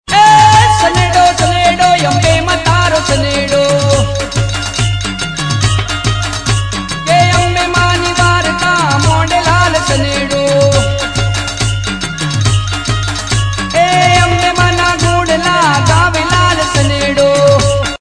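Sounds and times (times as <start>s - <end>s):
Gujarati ringtone song: 0.1s - 18.0s.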